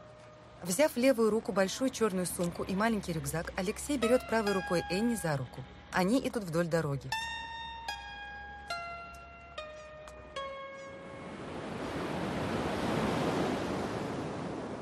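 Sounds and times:
speech: 0:00.6 - 0:07.4
waves breaking on a wide sandy shore: 0:11.0 - 0:14.7.

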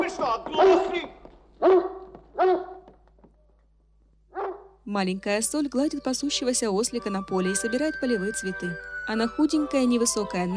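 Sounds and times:
speech: 0:00.1 - 0:01.8, 0:04.9 - 0:10.5
large grey dog barking: 0:00.6 - 0:00.9, 0:01.6 - 0:02.9, 0:04.3 - 0:04.8.

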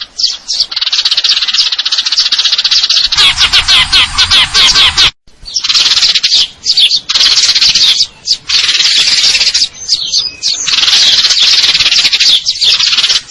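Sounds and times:
Eurasian tree sparrow chirping and trilling: 0:00.0 - 0:13.2.

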